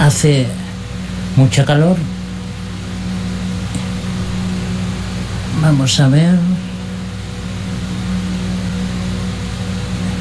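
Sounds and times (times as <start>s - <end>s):
electric fan running: 0.0s - 10.1s
speech: 0.1s - 0.6s, 1.4s - 2.2s, 5.6s - 6.5s.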